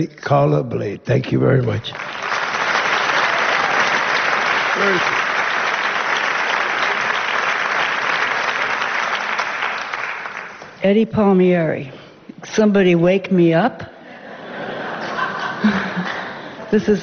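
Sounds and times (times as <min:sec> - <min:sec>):
speech: 0:00.0 - 0:02.4, 0:04.8 - 0:05.2, 0:10.8 - 0:13.9, 0:15.6 - 0:15.9, 0:16.7 - 0:17.0
audience applause: 0:01.9 - 0:10.7
laughter: 0:14.1 - 0:16.9.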